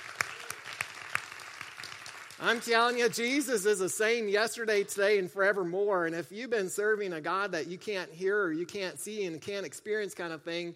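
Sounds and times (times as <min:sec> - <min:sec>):
audience applause: 0:00.0 - 0:02.8
sharp rhythmic claps: 0:00.0 - 0:03.1
speech: 0:02.4 - 0:10.7.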